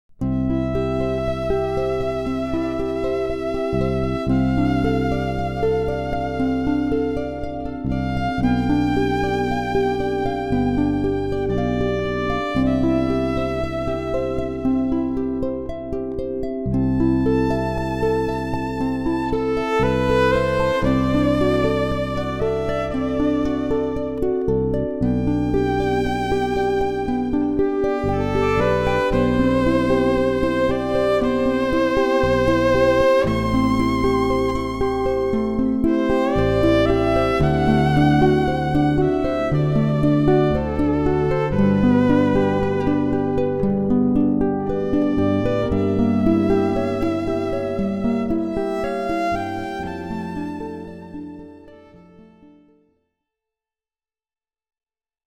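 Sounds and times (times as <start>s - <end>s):
electro-acoustic harp playing: 0.1s - 52.6s.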